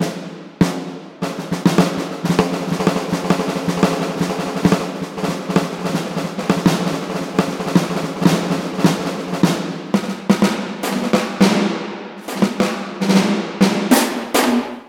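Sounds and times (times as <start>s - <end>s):
orchestral snare drum: 0.0s - 14.8s.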